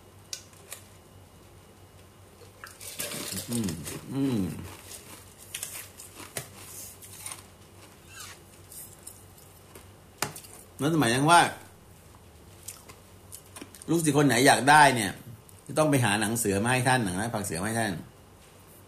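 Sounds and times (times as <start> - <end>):
person eating ice from a glass: 2.6 - 9.7
speech: 3.5 - 4.8, 10.8 - 11.6, 13.9 - 18.1.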